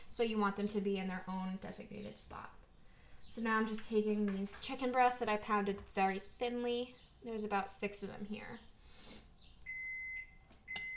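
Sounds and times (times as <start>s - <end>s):
speech: 0.1s - 2.6s, 3.3s - 8.7s
oven electronic beep signalling preheated: 9.7s - 10.9s.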